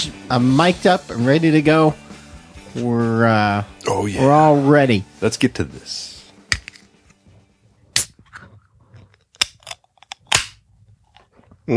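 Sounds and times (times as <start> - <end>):
speech: 0.0 - 2.0, 2.8 - 6.1
12-ounce beer can being opened: 6.4 - 6.9, 8.0 - 8.4, 9.0 - 10.6.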